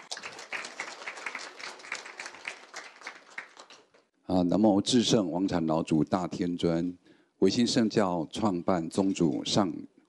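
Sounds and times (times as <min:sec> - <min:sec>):
sustained crowd applause: 0:00.0 - 0:04.0
speech: 0:04.3 - 0:10.0.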